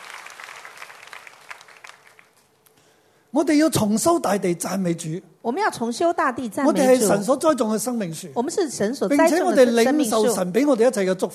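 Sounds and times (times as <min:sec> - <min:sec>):
audience applause: 0:00.0 - 0:02.4
speech: 0:03.3 - 0:11.3.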